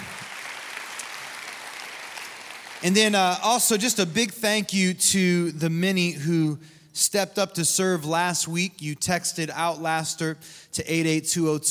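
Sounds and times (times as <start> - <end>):
church congregation applauding: 0.0 - 3.9
speech: 2.8 - 11.6.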